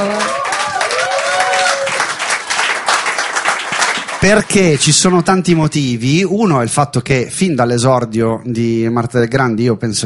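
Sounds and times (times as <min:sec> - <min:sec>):
audience applause: 0:00.0 - 0:04.5
speech: 0:04.2 - 0:10.0.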